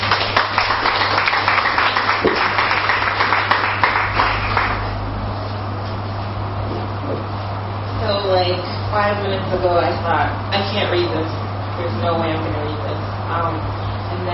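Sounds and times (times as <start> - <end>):
audience applause welcoming a speaker at a reading: 0.0 - 5.0
steady low hum: 1.6 - 14.3
speech: 9.0 - 12.7, 13.3 - 14.3.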